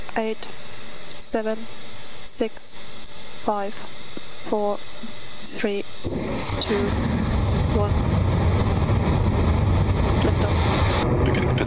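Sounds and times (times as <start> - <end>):
speech: 0.2 - 8.4, 11.0 - 11.6
Electron rocket liftoff roar from Launch Complex LC-1: 5.4 - 11.6.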